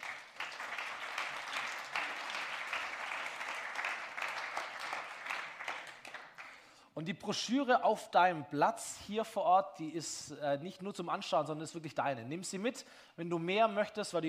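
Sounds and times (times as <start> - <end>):
audience applause: 0.0 - 6.6
speech: 7.0 - 14.2.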